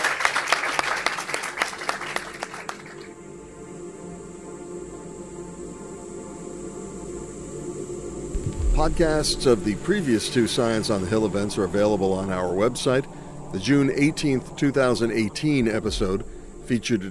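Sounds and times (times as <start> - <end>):
audience round of applause: 0.0 - 3.1
speech: 8.8 - 17.0.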